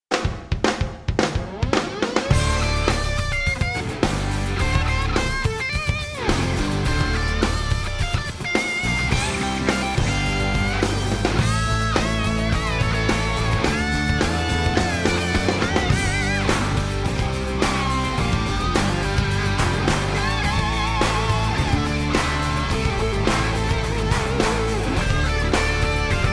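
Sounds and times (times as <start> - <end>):
instrumental music: 0.1 - 26.3.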